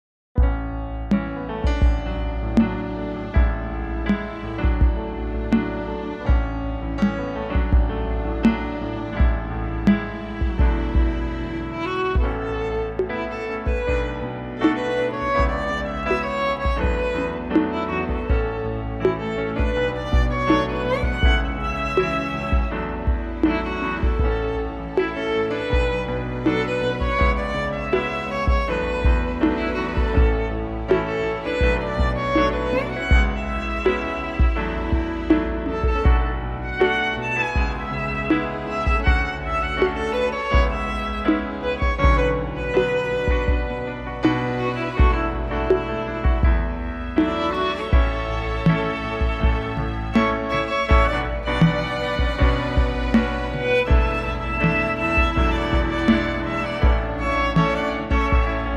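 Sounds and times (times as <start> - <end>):
violin cover: 1.0 - 58.7.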